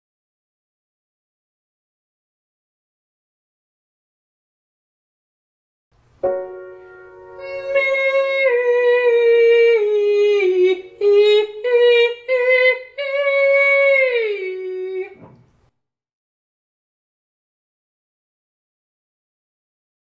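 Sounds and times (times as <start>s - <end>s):
person singing legato and staccato ascending to high G: 7.4s - 15.2s.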